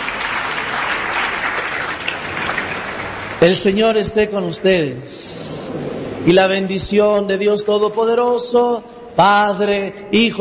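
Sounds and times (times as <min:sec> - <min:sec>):
audience applause: 0:00.0 - 0:03.6
speech: 0:03.4 - 0:10.3.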